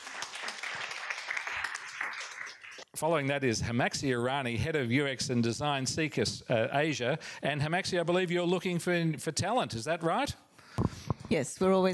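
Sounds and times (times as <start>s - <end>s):
audience applause: 0.0s - 2.9s
speech: 3.0s - 10.4s, 11.3s - 11.9s.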